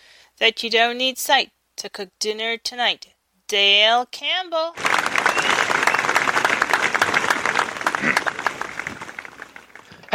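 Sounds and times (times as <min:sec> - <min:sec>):
speech: 0:00.4 - 0:05.9
crowd applause: 0:04.8 - 0:10.1.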